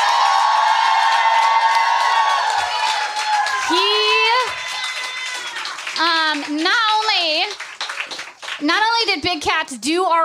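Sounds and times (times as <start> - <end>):
crowd cheering, whooping and applauding: 0.0 - 8.6
speech: 8.6 - 10.2.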